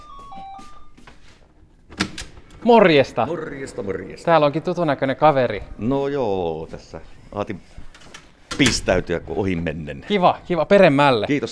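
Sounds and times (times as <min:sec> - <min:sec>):
doorbell ringing: 0:00.0 - 0:01.0
speech: 0:02.6 - 0:07.8, 0:08.6 - 0:11.5.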